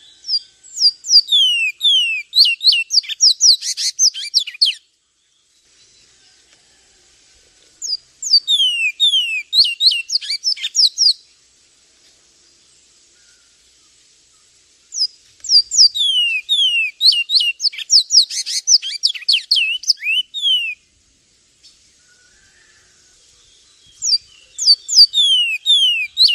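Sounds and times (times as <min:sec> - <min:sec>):
Javan tesia piercing high chirps and falling whistles: 0:00.3 - 0:04.8, 0:07.8 - 0:11.2, 0:15.0 - 0:20.8, 0:23.9 - 0:26.3.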